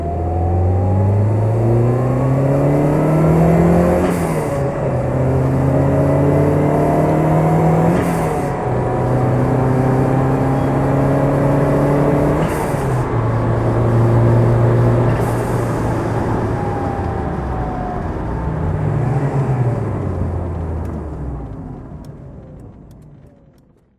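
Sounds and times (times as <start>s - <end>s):
1990 Lancia Delta HF Integrale 16V engine driving: 0.0s - 23.9s.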